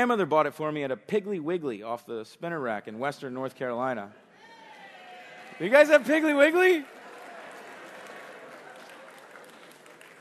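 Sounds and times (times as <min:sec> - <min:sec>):
speech: 0:00.0 - 0:04.2, 0:05.6 - 0:07.0
audience cheering and applauding: 0:04.5 - 0:10.1.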